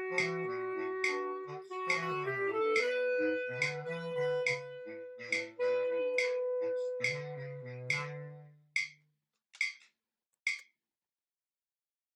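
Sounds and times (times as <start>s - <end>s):
melody: 0.0s - 8.4s.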